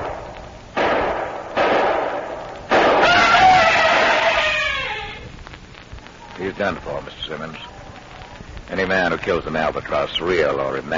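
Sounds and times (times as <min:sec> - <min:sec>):
gunshots from a man firing at an albatross aboard a ship: 0:00.0 - 0:04.5
speech: 0:06.6 - 0:07.8, 0:08.7 - 0:10.9.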